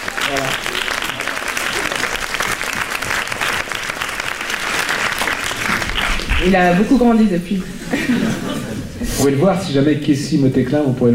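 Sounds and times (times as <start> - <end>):
audience applause: 0.0 - 6.9
speech: 6.4 - 11.1
laughter: 7.6 - 9.4.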